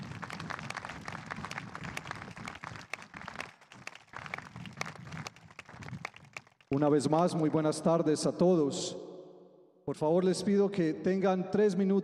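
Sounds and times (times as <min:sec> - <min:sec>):
audience applause: 0:00.0 - 0:06.7
speech: 0:06.7 - 0:09.0, 0:09.9 - 0:12.0.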